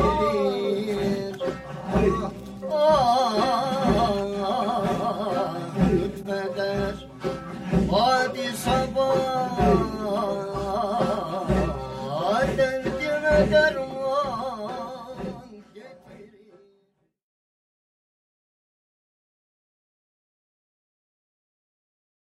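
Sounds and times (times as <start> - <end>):
Sufi hymn singing: 0.0 - 16.9.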